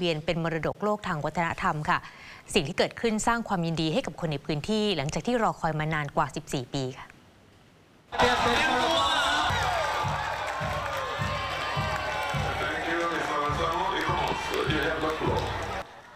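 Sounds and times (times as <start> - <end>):
speech: 0.0 - 7.1, 8.1 - 9.0
crowd cheering and clapping: 8.1 - 16.1.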